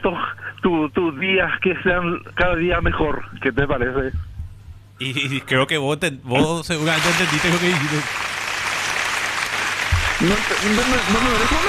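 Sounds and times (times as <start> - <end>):
speech: 0.0 - 4.3, 5.0 - 8.3, 10.2 - 11.6
applause: 6.9 - 11.6.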